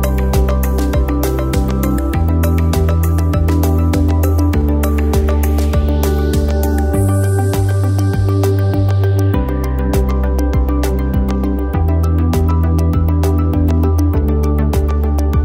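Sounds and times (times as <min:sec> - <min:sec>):
ambient corporate music: 0:00.0 - 0:15.4.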